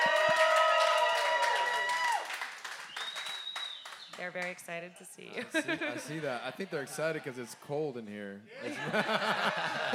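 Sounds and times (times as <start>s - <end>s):
crowd cheering and clapping for a band at a festival: 0.0s - 4.5s
speech: 4.2s - 9.9s
laughter: 5.4s - 7.3s, 8.6s - 9.9s.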